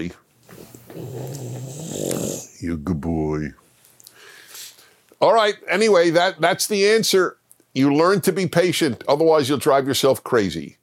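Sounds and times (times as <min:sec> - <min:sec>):
speech: 0:00.0 - 0:00.2, 0:02.6 - 0:03.6, 0:05.2 - 0:10.8
bulldog's heavy snoring breathing: 0:00.9 - 0:02.4.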